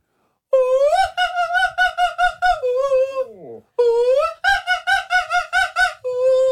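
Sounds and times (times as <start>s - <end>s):
caller singing high operatic notes: 0.6s - 6.4s.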